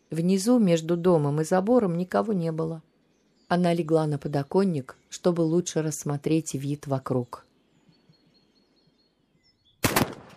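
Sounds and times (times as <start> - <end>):
speech: 0.1 - 2.9, 3.5 - 7.5
gunshot: 9.8 - 10.3.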